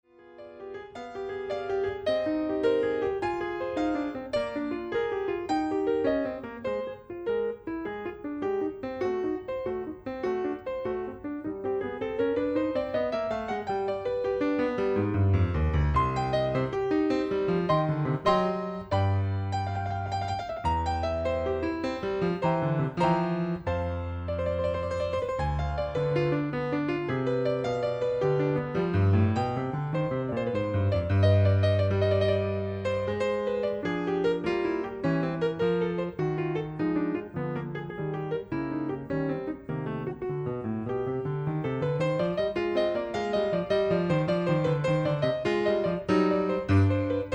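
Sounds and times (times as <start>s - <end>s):
classical piece in C minor: 0.0s - 47.3s.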